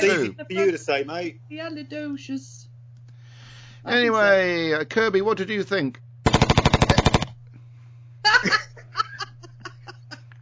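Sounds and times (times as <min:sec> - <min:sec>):
speech: 0:00.0 - 0:02.7, 0:03.8 - 0:06.0
gunshots: 0:06.3 - 0:07.3
people laughing: 0:08.3 - 0:10.3.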